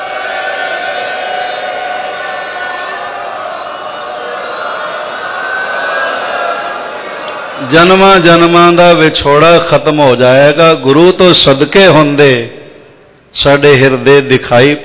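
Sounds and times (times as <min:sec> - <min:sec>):
congregation shouting a Sikh jaikara: 0:00.0 - 0:08.2
speech: 0:07.6 - 0:12.6, 0:13.3 - 0:14.8.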